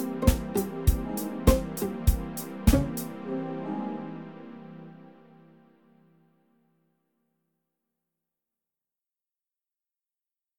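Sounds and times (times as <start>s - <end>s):
instrumental music: 0.0s - 6.3s.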